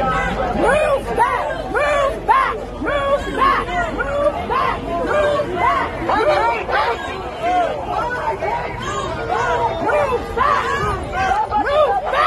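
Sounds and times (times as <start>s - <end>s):
protest crowd yelling at police: 0.0s - 12.2s.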